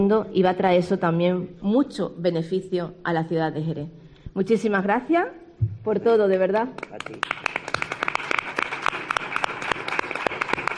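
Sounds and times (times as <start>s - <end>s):
speech: 0.0s - 7.4s
audience applause: 6.9s - 10.7s.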